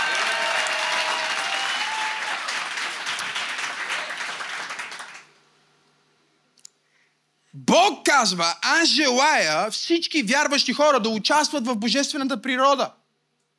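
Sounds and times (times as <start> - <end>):
church congregation clapping: 0.0 - 5.4
speech: 7.7 - 13.0.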